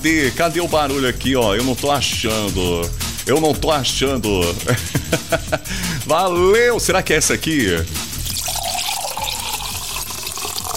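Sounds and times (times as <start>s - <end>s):
speech: 0.0s - 8.1s
laughter: 4.5s - 6.0s
drink poured to fill a glass: 8.2s - 10.7s.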